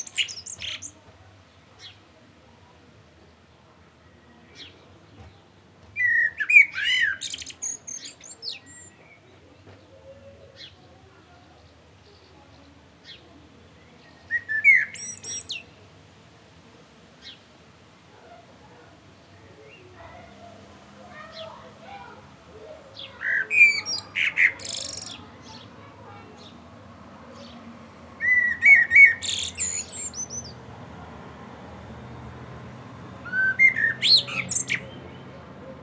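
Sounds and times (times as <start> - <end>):
common blackbird song: 0.0 - 1.0, 6.0 - 9.3, 13.8 - 15.7, 22.9 - 26.6, 28.2 - 30.7, 33.2 - 35.6.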